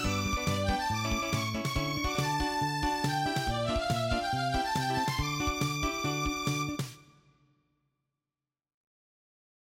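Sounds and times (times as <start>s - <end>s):
background music: 0.0s - 7.4s.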